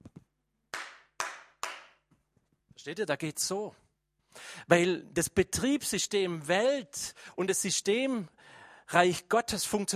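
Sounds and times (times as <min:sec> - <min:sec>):
hands clapping together: 0:00.0 - 0:02.2
speech: 0:02.8 - 0:03.8, 0:04.6 - 0:09.9.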